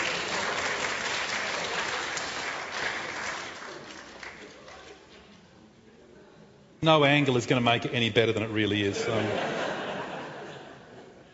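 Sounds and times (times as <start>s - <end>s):
sustained audience applause: 0.0s - 4.9s
speech: 6.8s - 9.6s.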